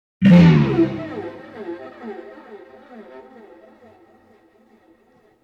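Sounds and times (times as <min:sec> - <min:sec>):
string quartet: 0:00.4 - 0:04.5.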